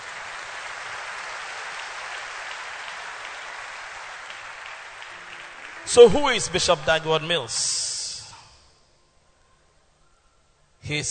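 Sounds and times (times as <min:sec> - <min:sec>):
weak audience clapping: 0:00.0 - 0:07.1
speech: 0:05.9 - 0:07.9, 0:10.9 - 0:11.0.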